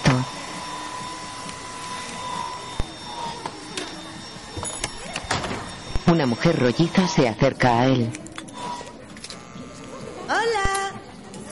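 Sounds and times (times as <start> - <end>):
hair dryer drying a client's hair in a beauty salon: 0.0 - 9.0
speech: 6.1 - 8.2.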